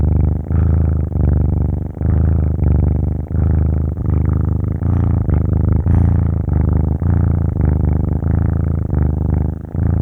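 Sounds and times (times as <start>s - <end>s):
kitten purring: 0.0s - 10.0s.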